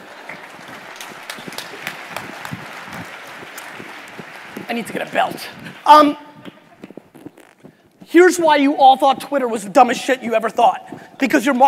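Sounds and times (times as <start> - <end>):
audience applause: 0.0 - 5.9
speech: 4.7 - 6.2, 8.1 - 11.6.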